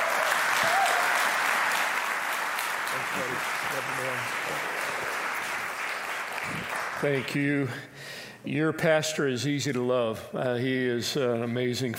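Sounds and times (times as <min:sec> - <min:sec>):
church congregation in Miles City applauding a visiting pastor: 0:00.0 - 0:07.7
speech: 0:03.1 - 0:05.2, 0:06.4 - 0:11.9.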